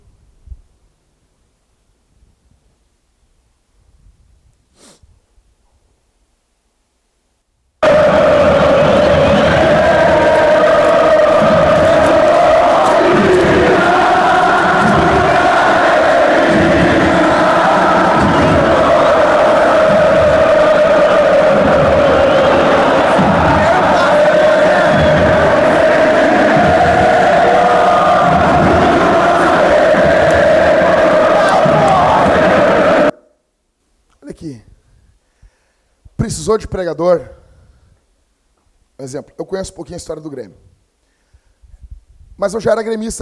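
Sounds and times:
football supporters cheering and chanting in stadium: 0:07.8 - 0:33.1
speech: 0:36.5 - 0:37.3, 0:39.0 - 0:40.7, 0:42.4 - 0:43.2.

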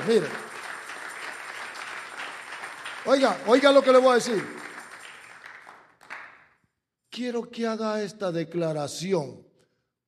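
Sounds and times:
speech: 0:00.0 - 0:00.5, 0:03.0 - 0:04.6, 0:07.2 - 0:09.5
audience applause: 0:00.0 - 0:06.4.

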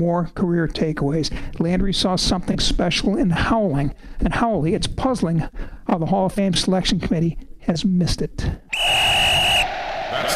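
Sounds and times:
speech: 0:00.0 - 0:08.6
whistle signalling the two-minute drill: 0:08.7 - 0:09.8.

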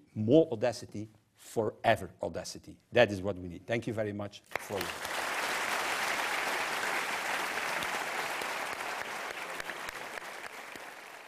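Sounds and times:
speech: 0:00.2 - 0:05.2
modest audience applause: 0:04.5 - 0:11.2.

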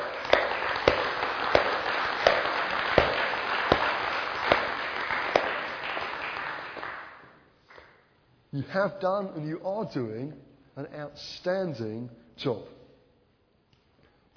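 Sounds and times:
crowd applauding: 0:00.0 - 0:07.4
speech: 0:08.6 - 0:12.8.

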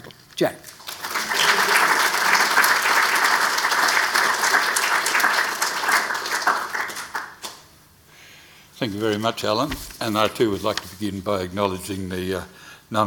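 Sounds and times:
speech: 0:00.4 - 0:00.8, 0:08.8 - 0:13.0
audience applause welcoming Jack Waterford AM as the 2021 Canberra orator: 0:00.8 - 0:07.4.

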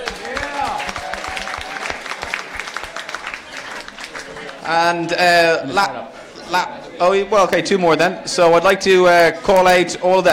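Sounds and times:
audience round of applause: 0:00.0 - 0:04.6
speech: 0:04.7 - 0:10.3.

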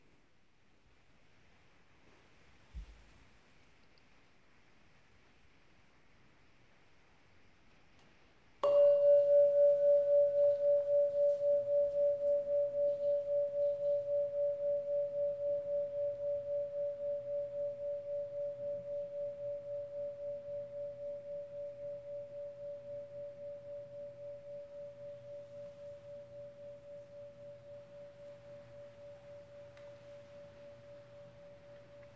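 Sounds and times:
meditation bell ringing: 0:08.6 - 0:32.1.

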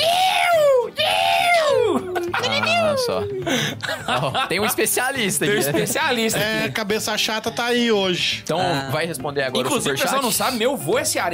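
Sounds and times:
person performing a Ceará-style booing jeer: 0:00.0 - 0:03.2
laughter: 0:01.8 - 0:06.8
speech: 0:03.0 - 0:11.3.

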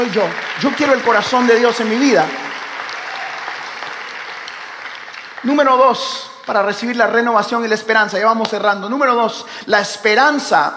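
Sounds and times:
speech: 0:00.0 - 0:02.4, 0:05.4 - 0:10.7
audience applause: 0:00.0 - 0:05.8.

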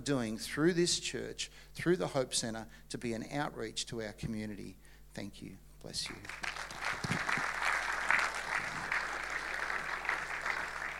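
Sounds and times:
speech: 0:00.0 - 0:07.2
audience applause: 0:06.2 - 0:10.9.

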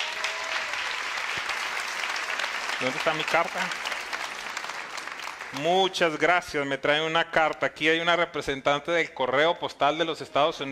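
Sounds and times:
loud audience applause: 0:00.0 - 0:06.3
speech: 0:02.8 - 0:03.9, 0:05.5 - 0:10.6.

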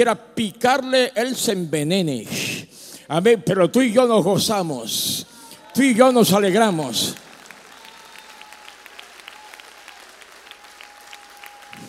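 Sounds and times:
speech: 0:00.0 - 0:07.2
crowd applause: 0:05.5 - 0:11.8.

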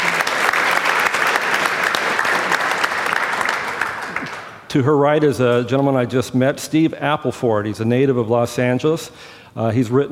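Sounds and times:
audience applause welcoming a speaker onto a panel: 0:00.0 - 0:04.7
speech: 0:04.7 - 0:10.1.

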